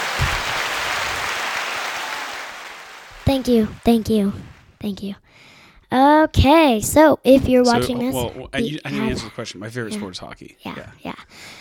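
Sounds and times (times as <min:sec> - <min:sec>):
people clapping: 0:00.0 - 0:04.8
speech: 0:03.3 - 0:11.5.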